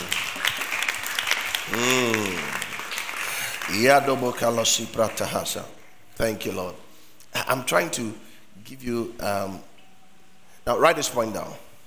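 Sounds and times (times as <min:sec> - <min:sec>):
crowd clapping: 0:00.0 - 0:05.6
speech: 0:03.7 - 0:06.8, 0:07.4 - 0:09.7, 0:10.6 - 0:11.7.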